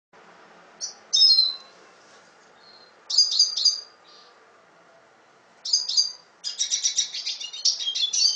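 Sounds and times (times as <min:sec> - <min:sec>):
red siskin twittering song with buzzy chattering: 0:00.8 - 0:01.7, 0:02.6 - 0:04.4, 0:05.6 - 0:08.3.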